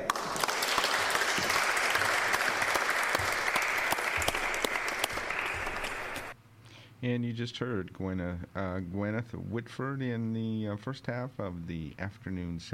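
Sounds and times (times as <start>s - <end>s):
audience applause: 0.0s - 6.4s
speech: 7.0s - 12.7s.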